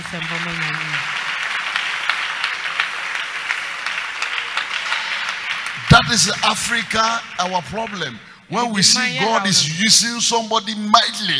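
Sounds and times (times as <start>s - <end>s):
crowd clapping: 0.0s - 11.3s
laughter: 0.0s - 11.3s
speech: 0.1s - 1.2s, 6.1s - 11.3s
person calling out: 8.5s - 10.2s.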